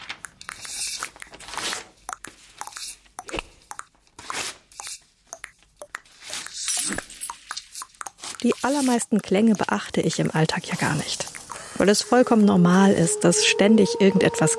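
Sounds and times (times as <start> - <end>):
paper being torn: 0.0 - 2.0, 4.2 - 4.7
speech: 8.4 - 14.5.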